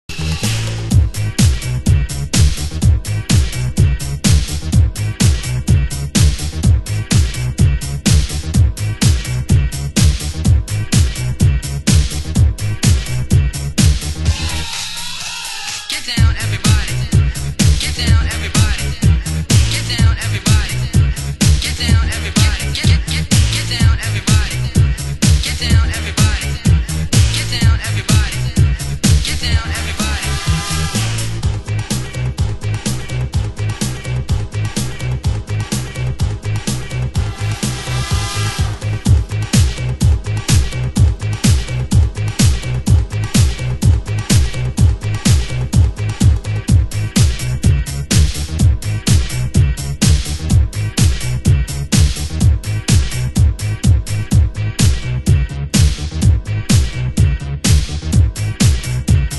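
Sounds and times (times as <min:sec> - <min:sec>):
funk music: 0:00.1 - 0:59.3.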